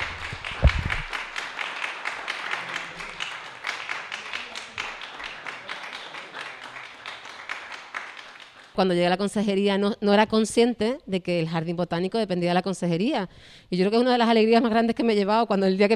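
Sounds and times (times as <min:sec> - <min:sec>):
audience applause: 0:00.0 - 0:08.8
speech: 0:08.8 - 0:15.9.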